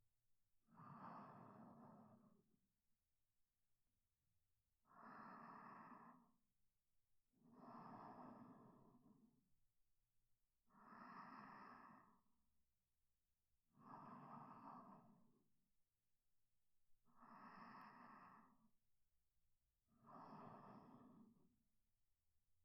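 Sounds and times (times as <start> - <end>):
sleep breathing: 0.8 - 2.4, 4.9 - 6.3, 7.6 - 9.3, 10.8 - 12.3, 13.7 - 15.3, 17.2 - 18.7, 20.0 - 21.4.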